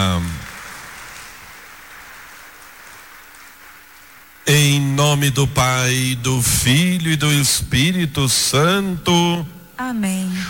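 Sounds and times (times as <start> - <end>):
applause: 0.0 - 4.8
speech: 5.0 - 10.4.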